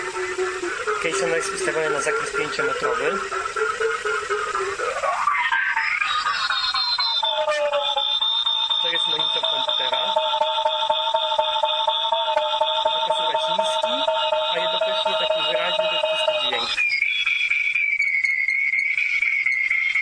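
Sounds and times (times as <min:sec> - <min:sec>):
echolocation device tone reflecting off carpet: 0:00.0 - 0:20.0
speech: 0:01.0 - 0:03.6.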